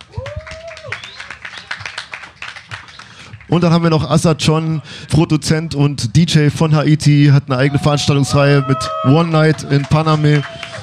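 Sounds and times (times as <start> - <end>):
audience applause: 0.0 - 3.2, 8.6 - 10.8
speech: 3.5 - 10.6.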